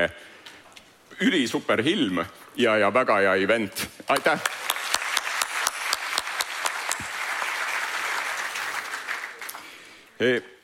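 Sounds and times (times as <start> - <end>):
speech: 0.0 - 0.3, 1.2 - 4.6, 10.2 - 10.5
audience applause: 4.1 - 9.9.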